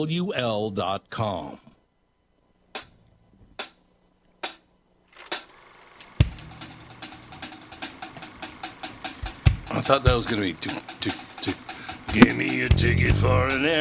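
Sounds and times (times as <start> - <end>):
speech: 0.0 - 1.7, 9.8 - 13.8
film projector running: 5.1 - 12.6.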